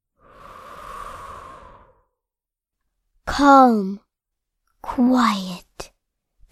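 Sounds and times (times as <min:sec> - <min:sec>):
long breath during a guided calm breathing exercise: 0:00.2 - 0:02.2
speech: 0:03.4 - 0:04.0, 0:04.8 - 0:05.9.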